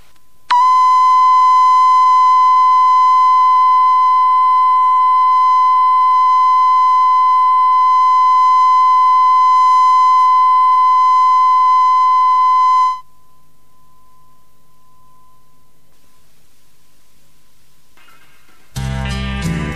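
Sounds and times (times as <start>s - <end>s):
1 kHz test tone at 0 dB from a 1992 community FM test broadcast: 0.5s - 13.1s.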